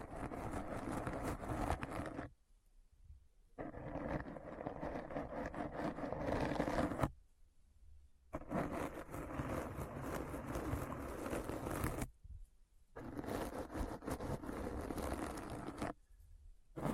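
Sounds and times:
rough scratching: 0.0s - 2.3s, 3.6s - 7.1s, 8.4s - 12.1s, 13.0s - 16.0s.

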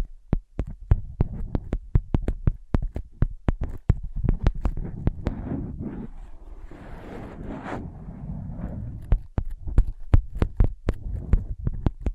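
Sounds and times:
tapping on ear pads: 0.0s - 5.4s, 9.0s - 12.1s
muffled scratching and tracing: 0.6s - 12.1s
low rumble: 4.8s - 9.3s.

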